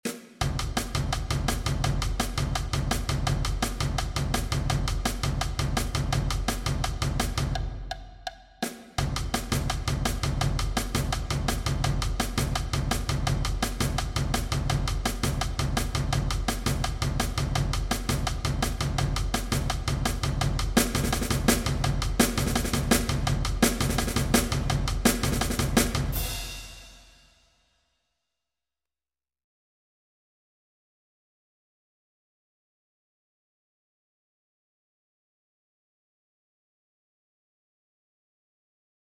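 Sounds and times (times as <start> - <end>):
percussion: 0.0 - 27.3.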